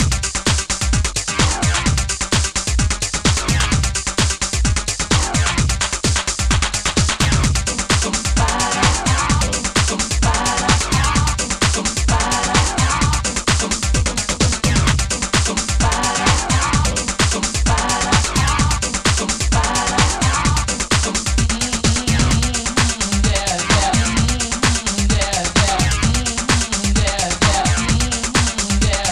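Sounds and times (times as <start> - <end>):
Amiga techno music: 0.0 - 29.0.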